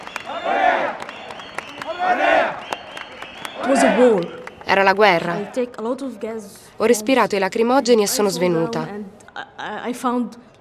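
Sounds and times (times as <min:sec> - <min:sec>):
protesting crowd at Tahrir shouting in indignation: 0:00.0 - 0:04.5, 0:05.1 - 0:06.4
speech: 0:03.7 - 0:10.5.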